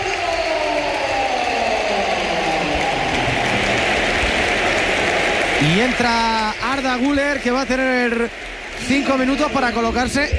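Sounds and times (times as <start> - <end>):
stadium crowd ovation: 0.0 - 10.3
speech: 5.6 - 10.3.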